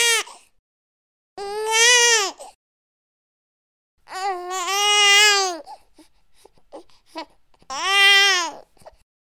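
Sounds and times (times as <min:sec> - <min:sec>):
newborn baby crying: 0:00.0 - 0:00.5, 0:01.4 - 0:02.6, 0:04.1 - 0:09.0.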